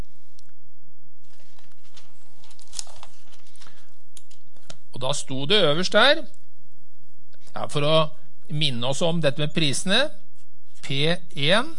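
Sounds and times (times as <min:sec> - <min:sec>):
low hum: 0:00.0 - 0:11.7
paper page turning: 0:01.2 - 0:04.8
speech: 0:05.0 - 0:06.4, 0:07.6 - 0:10.2, 0:10.8 - 0:11.7.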